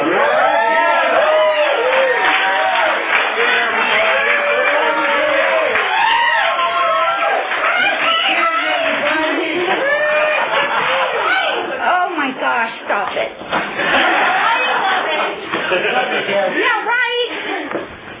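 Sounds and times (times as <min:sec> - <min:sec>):
audience cheering and applauding at a Valley Group evening gathering: 0:00.0 - 0:11.8, 0:13.8 - 0:15.4
laughter: 0:07.6 - 0:12.0, 0:13.5 - 0:17.8.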